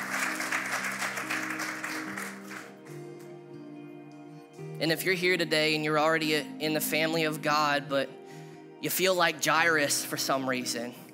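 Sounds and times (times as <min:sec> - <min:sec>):
audience applauding: 0:00.0 - 0:02.9
speech: 0:04.8 - 0:08.2, 0:08.8 - 0:11.0.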